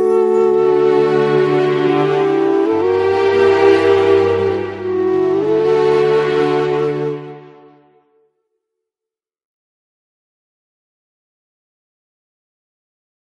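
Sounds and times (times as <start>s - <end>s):
instrumental birthday song: 0.0s - 8.0s.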